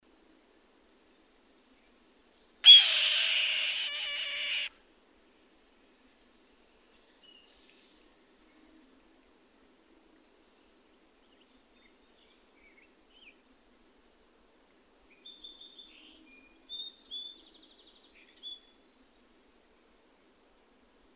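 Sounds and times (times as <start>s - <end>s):
bird rasping screech: 2.7s - 4.7s.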